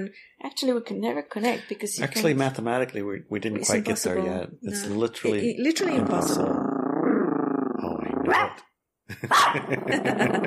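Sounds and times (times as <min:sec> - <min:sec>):
speech: 0:00.0 - 0:06.7, 0:09.2 - 0:10.4
dog growling at birds: 0:05.8 - 0:08.6, 0:09.4 - 0:10.4
dog barking at birds: 0:08.2 - 0:08.6, 0:09.3 - 0:09.7
laughter: 0:09.1 - 0:10.4.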